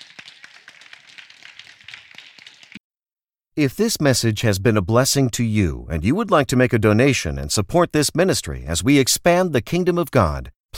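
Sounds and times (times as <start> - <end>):
audience hand clapping: 0.0 - 2.8
speech: 3.6 - 10.7.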